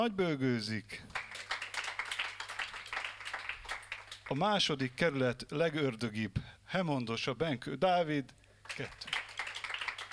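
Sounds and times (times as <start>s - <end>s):
speech: 0.0s - 1.3s, 4.3s - 9.1s
jazz quartet concert audience applauding a drummer: 1.2s - 4.4s, 8.7s - 10.1s.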